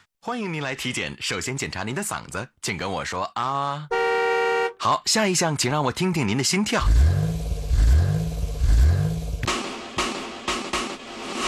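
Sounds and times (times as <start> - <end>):
speech: 0.2 - 4.0, 4.8 - 7.2
car engine revving: 6.8 - 9.7.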